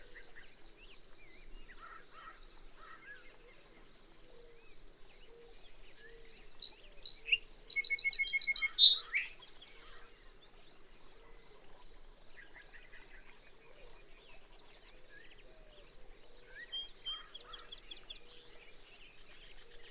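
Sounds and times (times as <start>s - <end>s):
bird song: 0.0s - 19.8s.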